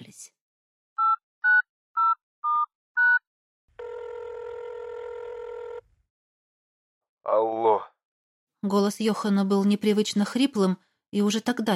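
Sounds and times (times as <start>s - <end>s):
telephone touch-tone dialing beeps: 1.0s - 3.2s
steady electronic telephone line tone: 3.8s - 5.8s
speech: 7.3s - 7.9s, 8.6s - 11.7s.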